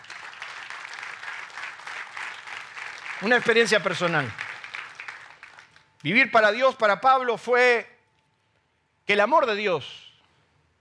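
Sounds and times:
audience applause: 0.0 - 5.8
speech: 3.2 - 4.4, 6.0 - 7.9, 9.1 - 10.0.

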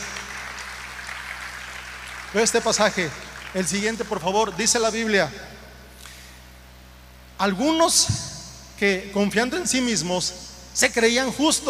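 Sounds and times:
audience applause: 0.0 - 4.2
speech: 2.3 - 5.6, 7.4 - 11.6.

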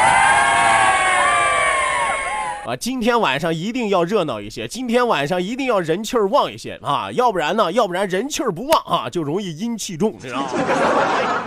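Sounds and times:
audience applause and cheering: 0.0 - 2.7
speech: 2.7 - 11.4
laughter: 10.2 - 11.4.

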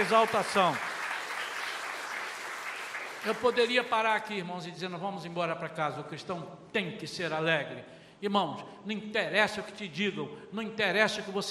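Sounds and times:
speech: 0.0 - 0.9, 3.2 - 11.4
audience applauding: 0.0 - 3.9.

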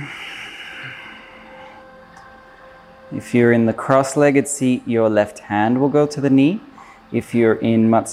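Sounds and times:
long breath exhaled during a seated yoga twist Matsyendrasana: 0.0 - 2.0
speech: 3.1 - 8.1.

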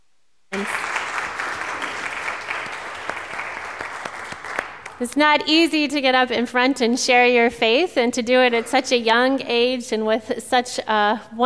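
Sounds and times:
audience applause: 0.5 - 5.0
speech: 5.0 - 11.4.

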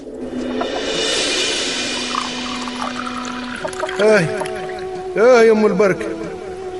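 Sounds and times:
tea being poured, gurgling: 0.5 - 5.2
speech: 4.0 - 4.5, 5.2 - 6.2.

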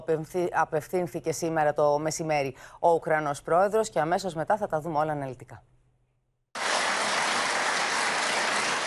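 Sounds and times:
speech: 0.1 - 5.8
applause in the Greek Parliament: 6.6 - 8.8.

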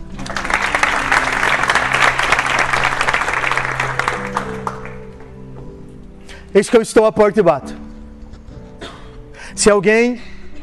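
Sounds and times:
audience applause: 0.0 - 5.4
speech: 6.5 - 7.8, 9.6 - 10.3.

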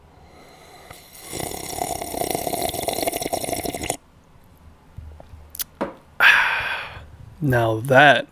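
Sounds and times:
person sipping a cup of coffee: 0.3 - 4.0
speech: 7.4 - 8.2.

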